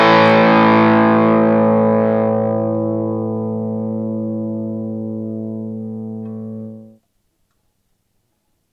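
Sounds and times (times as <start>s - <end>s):
crunch guitar tone through double bridge pickup microphone: 0.0s - 7.0s.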